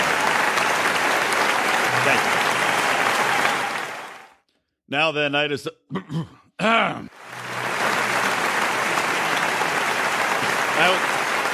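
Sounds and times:
audience clapping: 0.0s - 4.4s, 7.1s - 11.5s
speech: 4.9s - 7.4s, 10.8s - 11.2s
person clearing throat: 5.9s - 6.5s.

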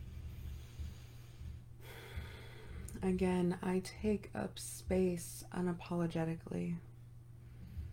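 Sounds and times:
low steady hum: 0.0s - 7.9s
person taking a deep breath during guided meditative breathwork: 0.4s - 2.9s
speech: 3.0s - 6.9s.

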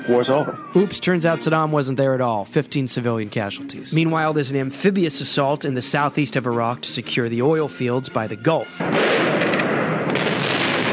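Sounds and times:
speech: 0.1s - 9.6s
bunker buster munitions and cruise missiles exploding: 8.8s - 10.9s.

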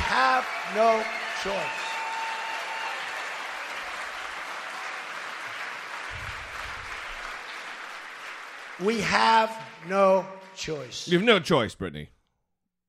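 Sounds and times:
rally crowd cheering and applauding: 0.0s - 10.3s
speech: 0.4s - 1.8s, 8.8s - 12.2s.

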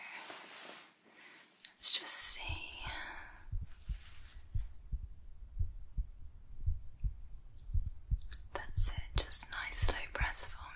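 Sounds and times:
heartbeat through a stethoscope: 2.4s - 10.7s.

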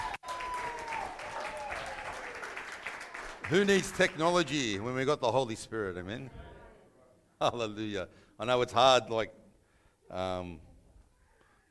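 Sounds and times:
audience round of applause: 0.0s - 4.9s
speech: 3.5s - 6.4s, 7.4s - 9.4s, 10.1s - 10.7s.

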